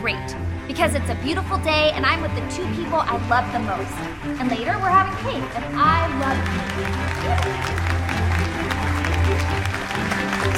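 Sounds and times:
speech: 0:00.8 - 0:10.5
audience applause: 0:02.7 - 0:10.5.

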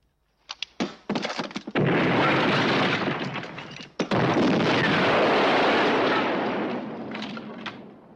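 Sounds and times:
grenade explosions tearing through a hut's walls: 0:01.7 - 0:08.1.

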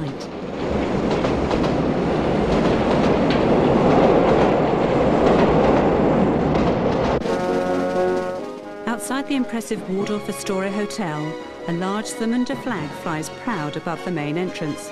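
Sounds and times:
underground tube train departing: 0:00.0 - 0:14.9
wheels clattering on rails: 0:00.2 - 0:08.7
speech: 0:09.3 - 0:14.9.

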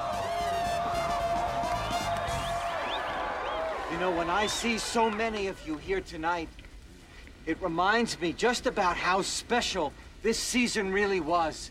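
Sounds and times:
crowd cheering at college rally: 0:00.0 - 0:06.2
speech: 0:03.9 - 0:06.6, 0:07.4 - 0:11.6.

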